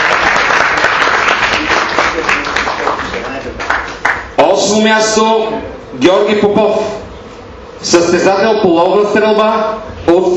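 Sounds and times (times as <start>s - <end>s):
large audience applause: 0.0s - 4.2s
speech: 4.7s - 7.0s, 7.8s - 10.3s.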